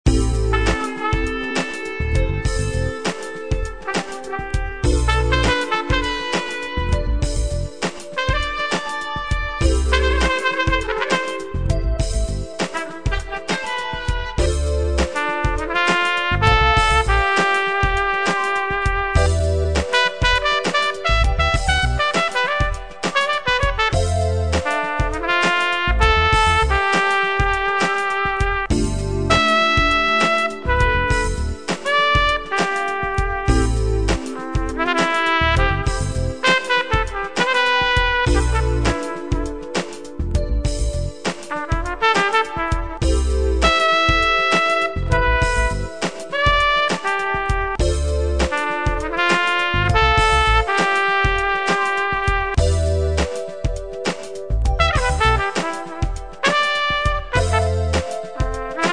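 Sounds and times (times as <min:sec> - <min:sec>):
funk chords: 0:00.0 - 0:58.9
trumpet: 0:00.1 - 0:58.9.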